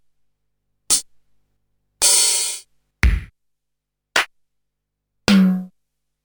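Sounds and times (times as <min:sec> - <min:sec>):
Korg DDD-5 drum machine: 0:02.0 - 0:03.3, 0:05.3 - 0:05.7.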